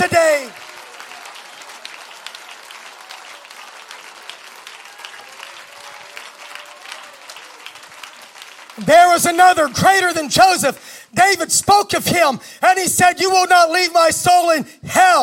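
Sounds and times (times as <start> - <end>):
audience applause: 0.0 - 10.3
speech: 8.9 - 15.2.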